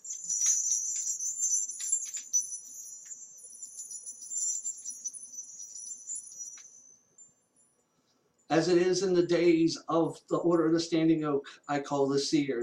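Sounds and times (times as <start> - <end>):
bell branch ringing: 0.0 - 7.9
speech: 8.6 - 12.6.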